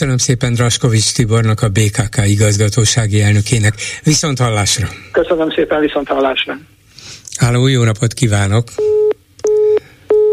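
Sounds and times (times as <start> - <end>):
speech: 0.0 - 9.1
telephone busy tone after a dropped call: 8.8 - 10.3.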